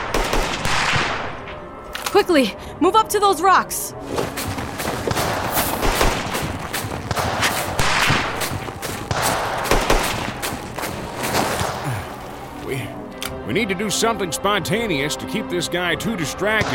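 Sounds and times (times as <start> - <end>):
gunfire during a firefight in the snow: 0.0 - 1.6, 4.4 - 11.8
speech: 2.2 - 4.4, 13.5 - 16.7.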